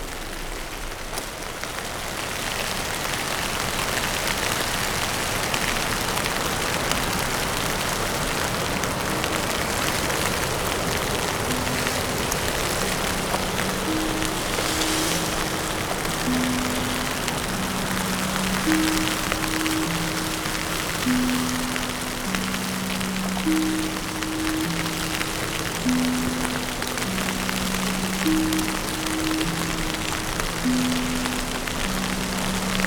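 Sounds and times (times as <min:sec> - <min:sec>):
snow grains falling on an umbrella: 0:00.0 - 0:32.8.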